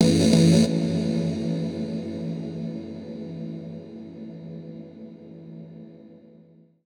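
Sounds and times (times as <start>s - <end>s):
techno at 140: 0.0s - 1.0s.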